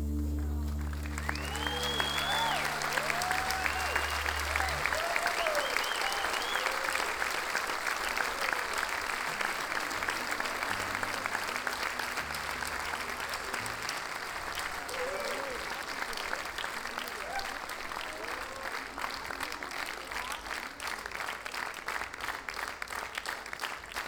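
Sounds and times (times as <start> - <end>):
audience clapping in sync: 0.2 - 24.0
cheers and whoops: 1.0 - 8.9, 12.8 - 16.4, 16.9 - 19.2.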